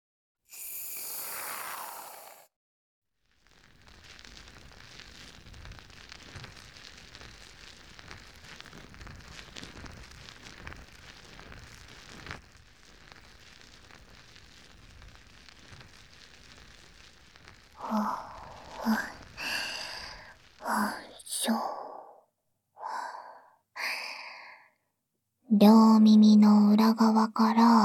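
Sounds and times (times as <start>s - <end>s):
fluffy foam crackling near the ear: 3.2s - 21.7s
speech: 25.6s - 27.8s.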